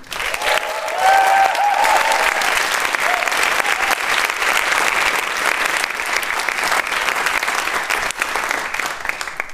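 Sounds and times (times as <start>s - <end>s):
live audience applause: 0.0s - 9.5s
faint whistles and cheers: 0.1s - 4.2s.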